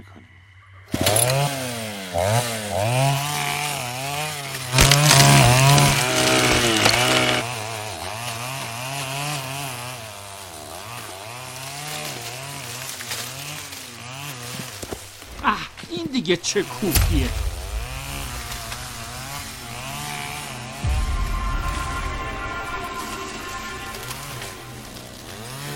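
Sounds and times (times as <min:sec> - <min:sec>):
chainsaw revving and cutting a small tree trunk: 0:00.9 - 0:15.4, 0:16.5 - 0:25.7
speech: 0:16.2 - 0:17.5.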